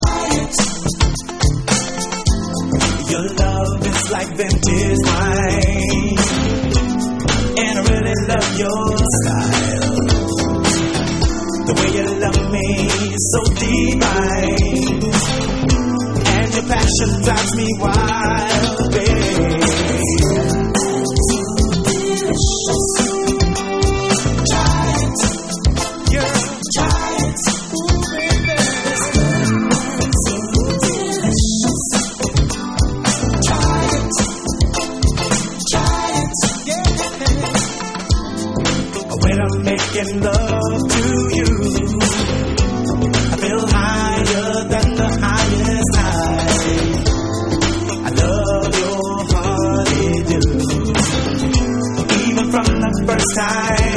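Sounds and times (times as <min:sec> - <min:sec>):
vocals: 0:00.0 - 0:53.9.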